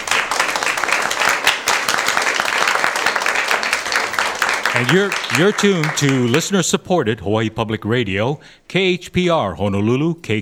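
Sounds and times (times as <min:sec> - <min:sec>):
studio audience applauding at a radio candidates' forum: 0:00.0 - 0:06.6
speech: 0:04.8 - 0:10.4.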